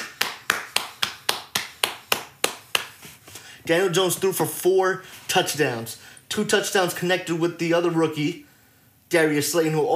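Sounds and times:
person clapping hands: 0.0s - 3.2s
speech: 3.6s - 8.5s, 9.1s - 9.9s.

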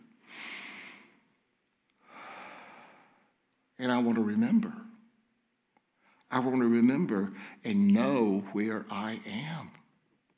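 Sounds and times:
deep slow breath: 0.2s - 1.2s, 2.0s - 3.4s
speech: 3.8s - 4.8s, 6.3s - 9.8s.

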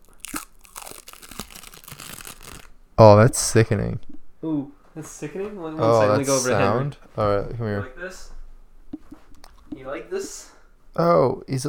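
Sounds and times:
band-aid peeled off skin: 0.0s - 2.7s
speech: 3.0s - 8.4s, 9.8s - 11.6s.

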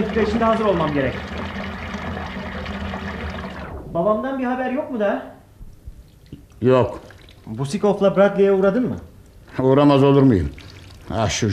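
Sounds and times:
water poured from a copper jug over someone's head: 0.0s - 3.7s, 6.1s - 7.6s, 10.2s - 11.5s
speech: 0.2s - 1.4s, 3.9s - 5.4s, 6.6s - 11.5s.

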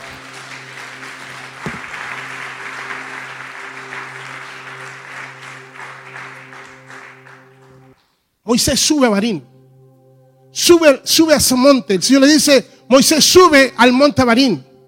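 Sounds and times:
audience applause: 0.0s - 8.0s
speech: 8.5s - 9.5s, 10.7s - 14.7s.

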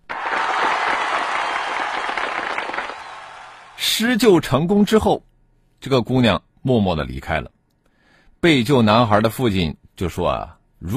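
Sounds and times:
crowd applause: 0.0s - 3.8s
speech: 3.9s - 7.6s, 8.4s - 10.9s.

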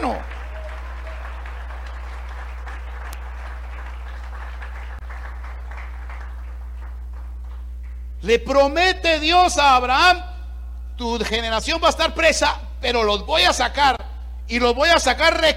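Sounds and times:
audience clapping: 0.0s - 8.2s
speech: 8.2s - 10.3s, 11.0s - 15.5s.

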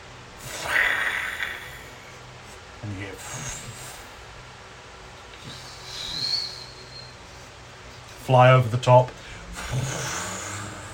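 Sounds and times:
heavy breath: 0.4s - 2.3s, 3.2s - 4.3s, 5.3s - 7.2s, 9.2s - 10.9s
speech: 2.8s - 3.8s, 8.3s - 10.2s.

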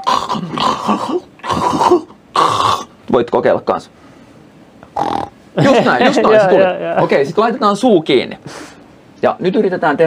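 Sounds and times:
person imitating snoring with their voice: 0.0s - 2.9s, 5.0s - 5.3s
speech: 0.4s - 2.0s, 3.1s - 4.0s, 5.0s - 10.0s.

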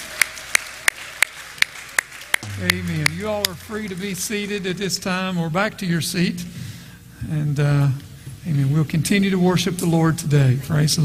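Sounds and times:
handclaps: 0.0s - 3.2s
low hiss: 2.4s - 10.6s
speech: 2.6s - 6.6s, 7.2s - 11.0s.

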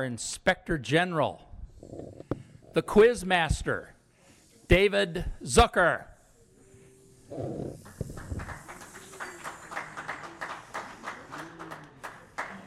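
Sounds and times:
speech: 0.0s - 2.2s, 2.8s - 4.0s, 4.7s - 6.1s, 7.3s - 7.8s
audience applause: 7.8s - 12.6s.

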